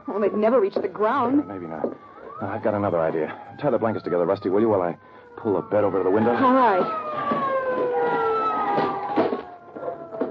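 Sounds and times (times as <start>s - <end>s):
police car siren wailing: 0.0s - 10.2s
speech: 0.1s - 7.5s.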